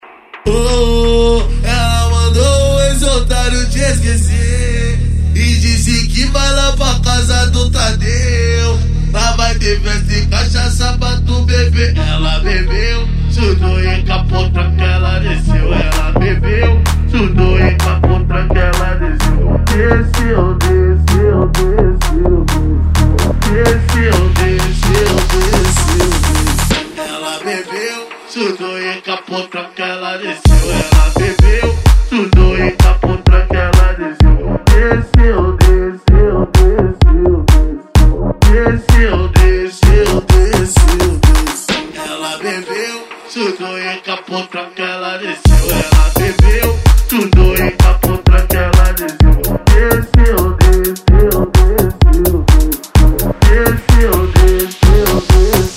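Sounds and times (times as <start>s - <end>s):
electro funk and sertanejo music: 0.0s - 29.5s, 30.4s - 44.5s, 45.4s - 55.7s.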